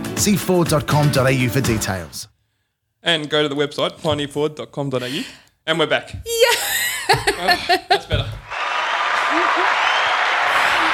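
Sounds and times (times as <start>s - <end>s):
speech: 0.2s - 2.4s, 3.0s - 8.3s
laughter: 6.5s - 10.9s
applause sound effect: 8.4s - 10.9s.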